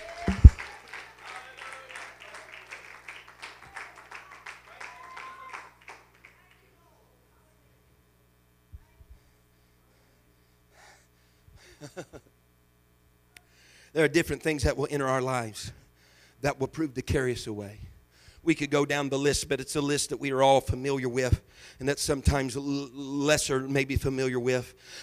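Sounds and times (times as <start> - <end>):
audience clapping hands: 0.0 - 6.7
speech: 14.0 - 15.8, 16.4 - 25.0.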